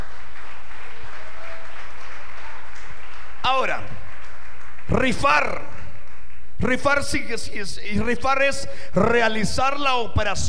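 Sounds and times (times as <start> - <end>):
audience clapping hands: 0.0 - 8.1
speech: 3.4 - 4.0, 4.9 - 5.7, 6.6 - 10.4.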